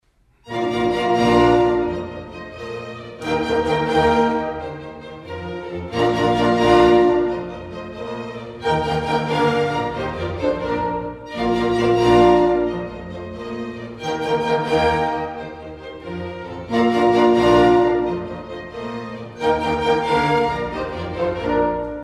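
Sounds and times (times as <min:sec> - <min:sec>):
symphony allegro: 0:00.0 - 0:22.0.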